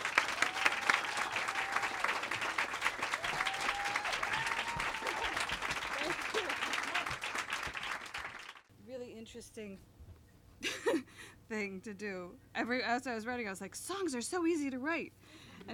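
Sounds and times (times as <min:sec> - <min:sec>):
audience applause welcoming a speaker onto the stage: 0:00.0 - 0:08.7
speech: 0:09.4 - 0:10.0, 0:10.6 - 0:15.7.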